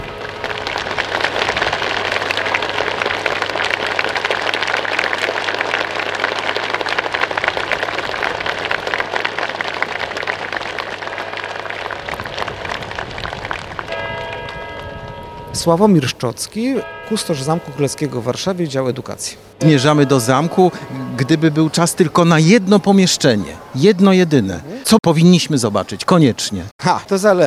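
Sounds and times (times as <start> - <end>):
crowd applauding: 0.0 - 15.5
speech: 15.6 - 27.4.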